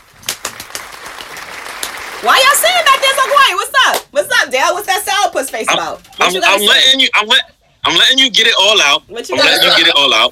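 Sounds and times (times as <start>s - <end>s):
sparse handclaps: 0.1s - 2.4s
speech: 2.2s - 10.2s.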